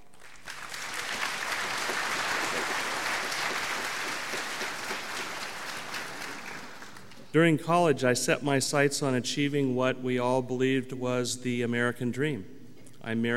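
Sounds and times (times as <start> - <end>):
audience applause welcoming a speaker: 0.0 - 7.3
speech: 7.4 - 13.3.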